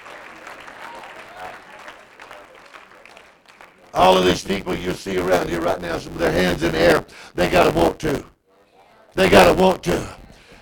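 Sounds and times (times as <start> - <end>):
audience clapping hands: 0.0 - 4.9
speech: 4.0 - 8.3, 9.2 - 10.2.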